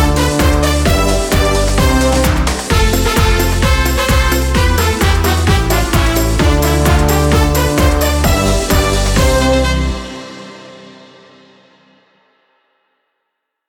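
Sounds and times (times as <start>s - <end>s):
karaoke singing: 0.0s - 10.6s.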